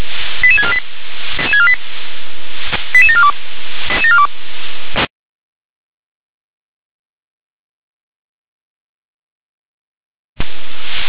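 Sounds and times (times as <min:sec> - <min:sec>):
radio hiss: 0:00.0 - 0:05.1, 0:10.4 - 0:11.0
fire brigade radio paging tones: 0:00.4 - 0:00.8, 0:01.4 - 0:01.8, 0:03.0 - 0:03.3, 0:03.9 - 0:04.3.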